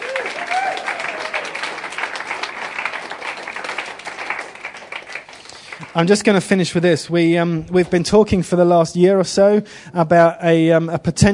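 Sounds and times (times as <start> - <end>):
audience clapping: 0.0 - 6.6
speech: 6.0 - 11.3.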